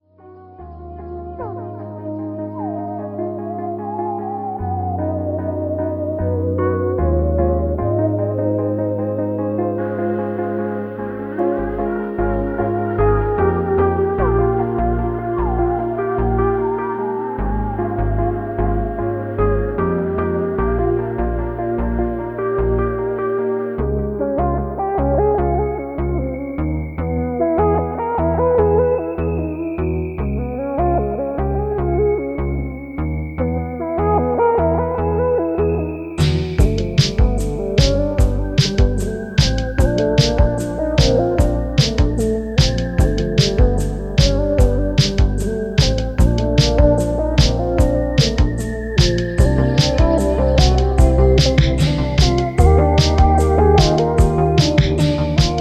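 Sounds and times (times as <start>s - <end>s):
instrumental music: 0.0s - 55.5s.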